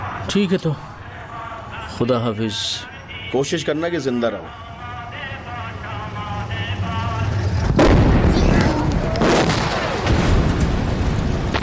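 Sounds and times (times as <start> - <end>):
speech: 0.3 - 0.9, 2.0 - 4.7
heavy booming blasts: 6.8 - 11.6
anti-aircraft guns firing skyward: 7.6 - 11.6.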